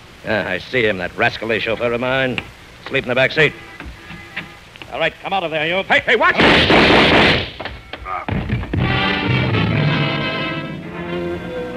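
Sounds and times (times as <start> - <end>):
speech: 0.2 - 3.7, 4.9 - 7.5
rapid-fire gunshots: 6.4 - 7.5
steady humming drone: 8.8 - 11.7.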